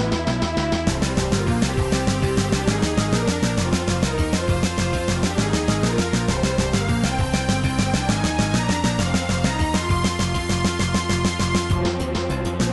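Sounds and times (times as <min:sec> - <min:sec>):
game boss music: 0:00.1 - 0:12.6.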